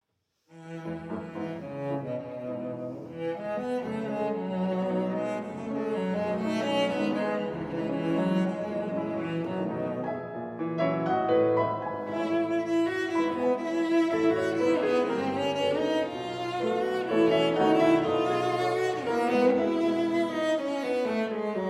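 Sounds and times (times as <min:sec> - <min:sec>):
cello sonata in E minor: 0:00.3 - 0:21.6.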